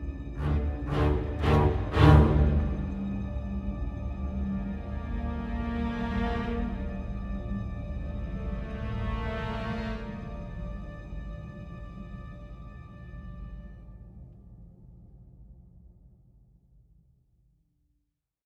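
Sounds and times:
ambient music: 0.0s - 13.9s.

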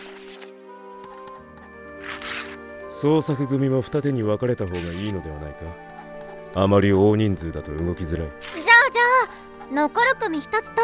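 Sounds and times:
paper crinkling and rustling while making lottery slips: 0.0s - 0.5s, 2.0s - 2.6s
soft steady tonal background: 0.7s - 10.8s
speech: 3.0s - 5.9s, 6.5s - 8.6s, 9.7s - 10.8s.

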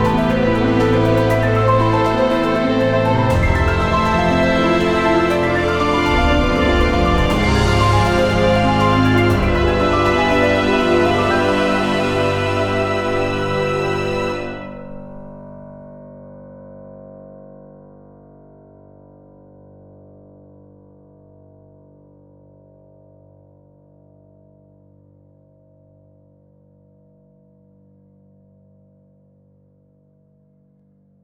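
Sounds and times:
fast music: 0.0s - 15.6s.

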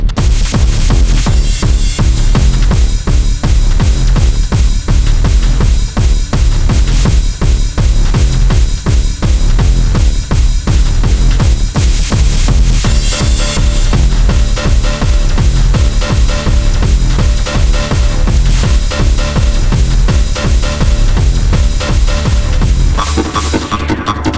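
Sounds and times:
low intensity nightclub ambience: 0.2s - 24.3s.

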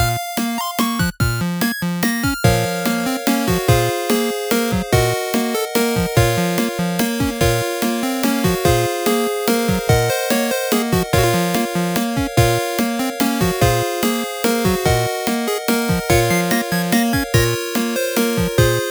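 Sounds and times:
castle level music: 0.1s - 18.8s.

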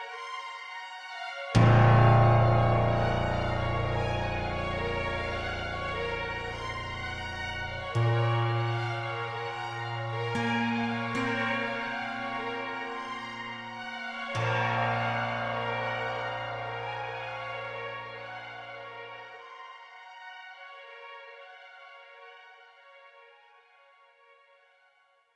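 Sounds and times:
dramatic string phrase: 1.6s - 19.8s.

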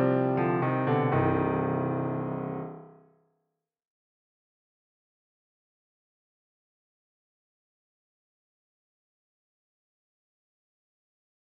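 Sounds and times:
prelude in C minor: 0.0s - 2.8s.

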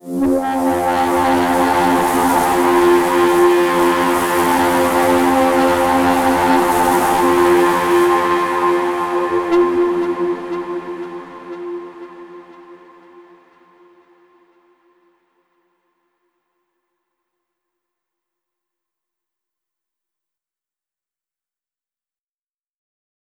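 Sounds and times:
overlay drone: 0.0s - 15.0s.

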